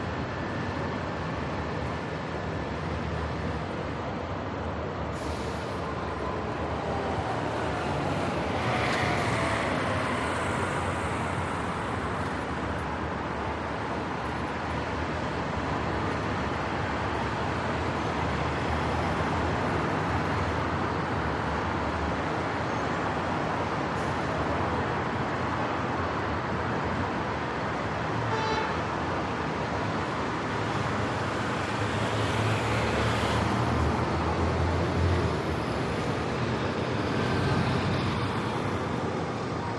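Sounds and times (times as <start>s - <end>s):
heavy morning rush hour traffic: 0.0s - 39.7s
Irish sirens: 5.8s - 11.9s.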